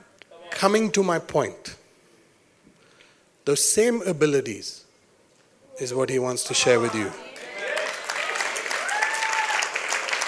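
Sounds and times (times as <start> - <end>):
speech: 0.6 - 1.7, 3.4 - 4.8, 5.8 - 7.3
audience clapping: 6.6 - 10.2.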